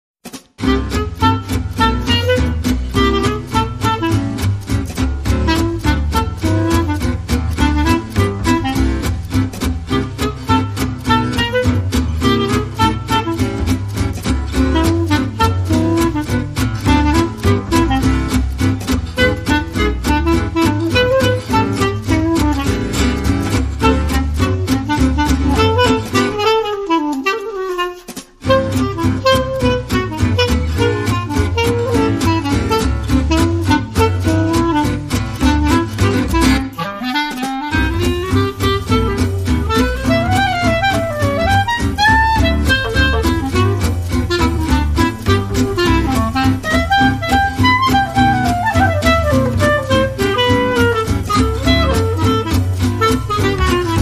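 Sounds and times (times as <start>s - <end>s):
clarinet playing: 0.6s - 54.0s.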